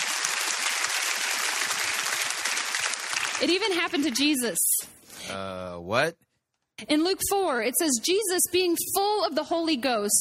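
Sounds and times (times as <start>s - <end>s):
audience applause: 0.0s - 4.6s
speech: 3.4s - 6.2s, 6.8s - 10.1s.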